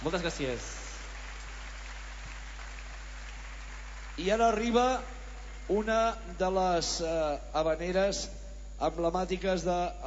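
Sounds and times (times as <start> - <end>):
speech: 0.0 - 0.9, 4.2 - 10.0
applause: 0.0 - 5.7.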